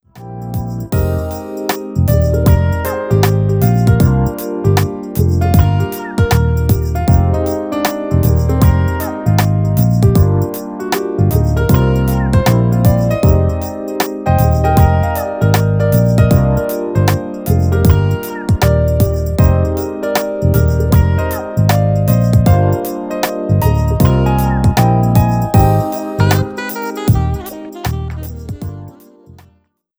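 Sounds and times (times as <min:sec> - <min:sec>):
background music: 0:00.5 - 0:29.4.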